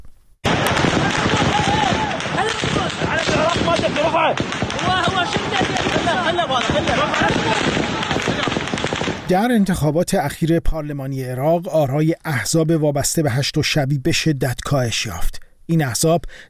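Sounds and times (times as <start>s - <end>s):
security forces firing gunshots into the air: 0.4s - 9.5s
speech: 4.1s - 7.8s, 9.3s - 16.4s.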